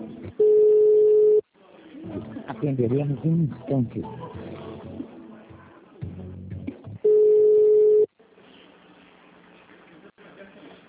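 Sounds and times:
telephone call-transfer beep: 0.4 - 1.4, 7.0 - 8.1
speech: 2.6 - 4.3.

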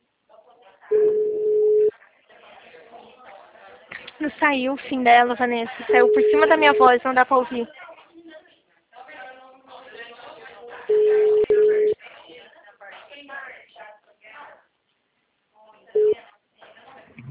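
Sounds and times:
telephone beep tone from a dropped phone call: 0.9 - 1.9, 5.9 - 7.0, 10.9 - 12.0, 16.0 - 16.2
speech: 4.2 - 7.8.

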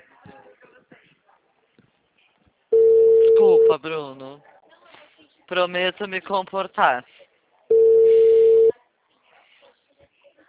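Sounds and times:
telephone busy signal on a dialed call: 2.8 - 3.7, 7.7 - 8.7
speech: 3.8 - 4.5, 5.5 - 7.2.

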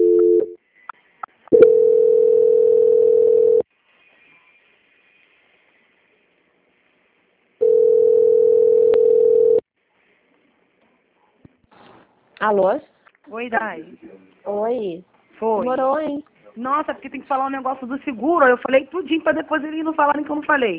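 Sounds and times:
mid-pitched telephone line tone during a call transfer: 0.0 - 0.6, 1.5 - 3.6, 7.6 - 9.6
speech: 12.5 - 20.7.

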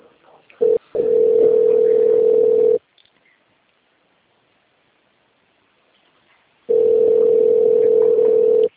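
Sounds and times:
telephone ringing with nobody answering: 0.6 - 2.8, 6.7 - 8.7.

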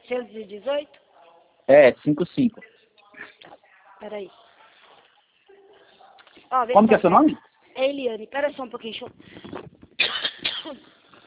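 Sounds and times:
speech: 0.1 - 1.0, 1.7 - 2.8, 3.4 - 4.4, 6.5 - 9.6, 10.7 - 11.0
person choking and coughing: 10.0 - 10.8.

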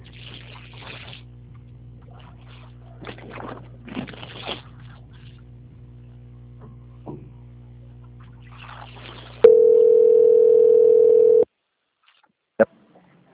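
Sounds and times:
low telephone line hum: 0.0 - 11.5
loud steady single-pitch telephone tone while a call is transferred: 9.4 - 11.5.

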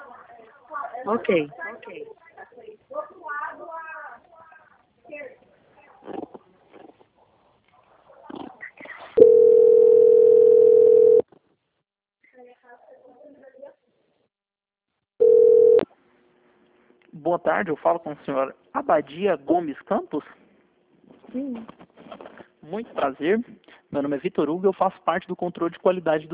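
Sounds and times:
speech: 1.0 - 2.2, 17.3 - 20.4, 21.3 - 21.8, 22.7 - 26.3
telephone line tone while a call is being transferred: 9.2 - 11.2, 15.2 - 15.9.

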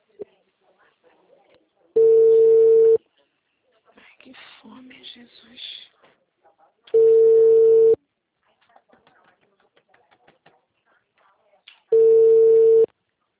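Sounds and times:
low-pitched telephone busy tone beeps after a dropped call: 2.0 - 3.0, 7.0 - 8.0, 12.0 - 12.9.

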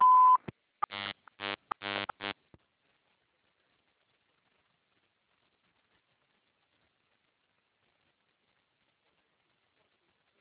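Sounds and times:
phone system digital answering line signal beep: 0.0 - 2.3.

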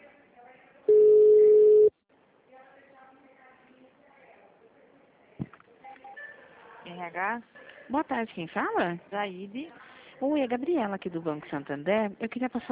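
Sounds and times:
telephone electronic beep while a call is being transferred: 0.9 - 1.9
speech: 7.0 - 12.6.

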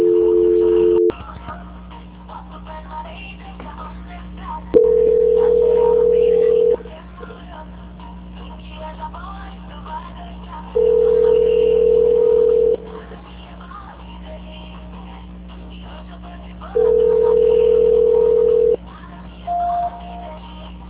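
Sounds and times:
telephone call-transfer tone beeps: 0.0 - 1.1, 4.8 - 6.8, 10.8 - 12.8, 16.8 - 18.8, 19.5 - 20.2.

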